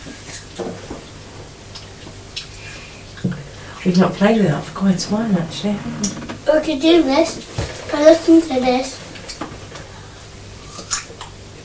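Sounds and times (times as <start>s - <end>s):
low steady hum: 0.0s - 11.6s
speech: 3.9s - 9.0s
person crunching a pear: 10.6s - 11.4s.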